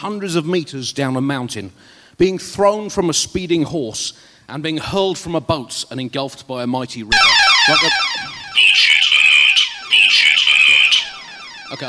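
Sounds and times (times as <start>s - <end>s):
speech: 0.0s - 8.9s
falling sweep of tones: 7.1s - 11.8s
loud electronic alarm sound effect blaring: 7.1s - 11.8s.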